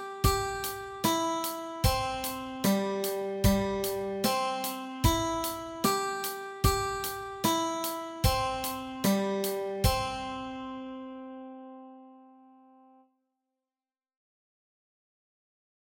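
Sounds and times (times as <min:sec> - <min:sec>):
guitar exercise: 0:00.0 - 0:13.0.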